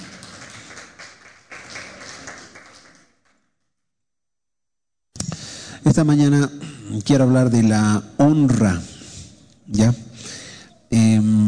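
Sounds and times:
audience applause: 0.0s - 3.4s
speech: 5.8s - 8.9s, 9.7s - 11.2s.

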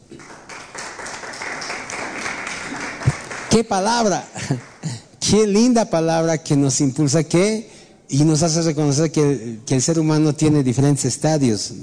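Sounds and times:
audience applause: 0.1s - 5.0s
speech: 3.6s - 4.7s, 5.3s - 11.8s.

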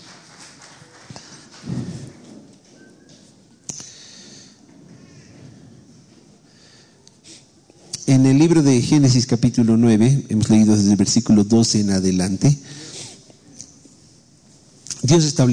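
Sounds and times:
audience applause: 0.0s - 2.5s
speech: 8.1s - 12.8s, 15.1s - 15.5s.

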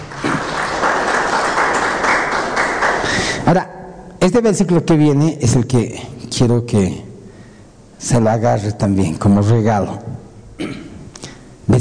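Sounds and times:
audience applauding: 0.0s - 3.4s
speech: 3.5s - 7.1s, 8.0s - 10.7s.

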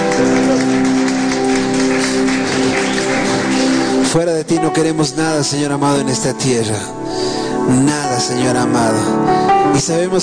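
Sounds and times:
audience applause: 0.0s - 4.3s
speech: 0.2s - 0.4s, 4.1s - 10.2s.

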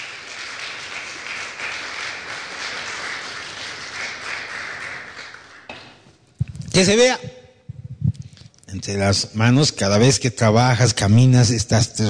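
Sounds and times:
audience applause: 0.0s - 5.7s
speech: 6.8s - 7.3s, 8.8s - 12.0s.

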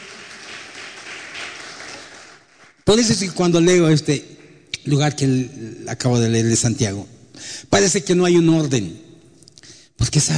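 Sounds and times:
audience applause: 0.0s - 2.8s
speech: 2.9s - 9.1s, 10.0s - 10.3s.

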